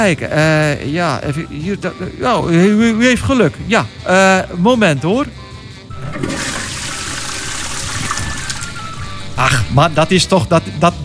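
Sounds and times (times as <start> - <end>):
speech: 0.0 - 5.4, 9.4 - 11.0
water cannon spraying: 6.1 - 9.2.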